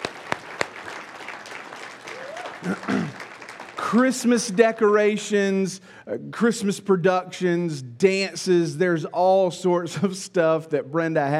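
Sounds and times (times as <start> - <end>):
audience applause: 0.0 - 4.1
people calling out and cheering: 0.0 - 4.1
speech: 2.6 - 3.2, 3.8 - 11.3.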